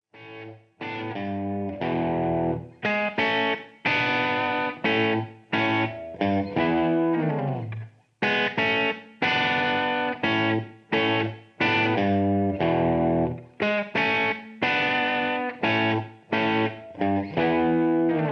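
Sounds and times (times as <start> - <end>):
backing track: 0.4 - 18.2.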